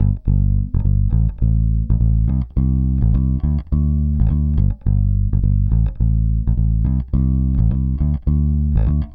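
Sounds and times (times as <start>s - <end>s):
pop music with bass: 0.0s - 9.1s.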